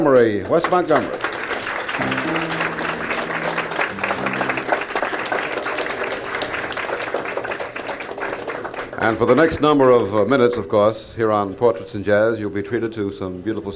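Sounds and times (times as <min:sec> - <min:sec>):
speech: 0:00.0 - 0:01.2, 0:02.0 - 0:02.7, 0:09.0 - 0:13.7
audience applause: 0:00.2 - 0:09.6
low sustained musical tones: 0:02.0 - 0:06.4.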